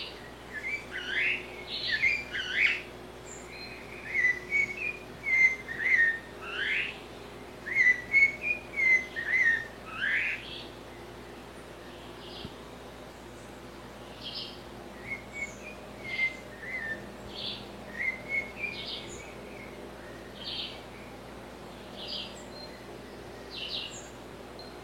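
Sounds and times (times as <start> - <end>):
blue-bellied parrot song with soft notes and bright whistled notes: 0.5 - 2.8, 4.0 - 6.9, 7.7 - 10.4, 15.0 - 17.0, 17.9 - 18.9.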